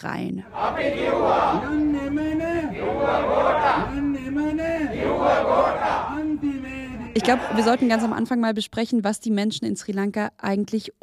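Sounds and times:
speech: 0.0 - 6.6, 7.2 - 11.0
protesters chanting in the streets of Sri Lanka: 0.4 - 8.3.

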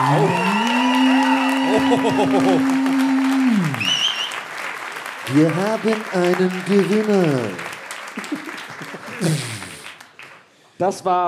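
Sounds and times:
laughter: 0.0 - 3.7, 8.1 - 9.9
audience applause: 0.0 - 10.7
speech: 1.8 - 2.8, 5.3 - 7.7, 9.2 - 9.5, 10.8 - 11.2.

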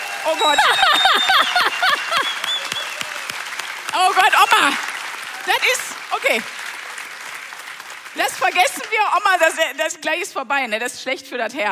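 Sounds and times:
excited cheers: 0.0 - 5.9
live audience applause: 0.0 - 9.4
speech: 0.2 - 1.7, 3.9 - 4.9, 5.5 - 6.6, 8.2 - 11.6
laughter: 0.3 - 2.7.

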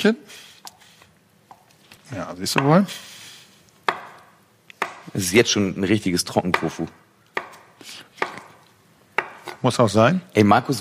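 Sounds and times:
speech: 0.0 - 0.5, 2.1 - 3.1, 5.1 - 7.0, 9.6 - 10.7
knife chopping dried tofu into bite-sized cubes on a board: 3.9 - 4.2, 4.8 - 5.1, 6.5 - 6.8, 7.4 - 8.6, 9.2 - 9.6.

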